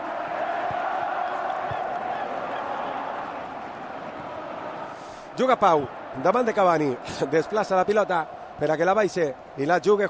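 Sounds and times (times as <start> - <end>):
football fans singing in a stadium: 0.0 - 5.0
speech: 5.4 - 10.0.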